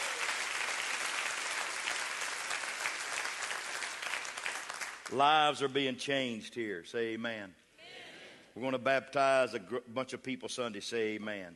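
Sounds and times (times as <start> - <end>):
audience clapping hands: 0.0 - 5.6
speech: 5.1 - 7.6, 8.6 - 11.5.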